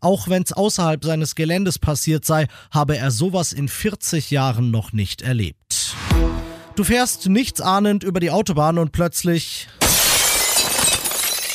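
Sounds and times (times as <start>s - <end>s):
speech: 0.0s - 6.0s, 6.8s - 10.0s
stone shattering a car windshield: 9.8s - 11.5s.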